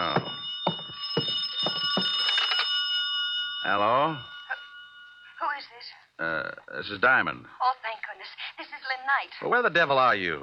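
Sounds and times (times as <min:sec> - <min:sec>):
knocks or footsteps thudding: 0:00.0 - 0:02.2
electronic telephone ringing tone: 0:00.5 - 0:05.4
speech: 0:03.7 - 0:04.3, 0:06.2 - 0:07.6, 0:09.1 - 0:10.4.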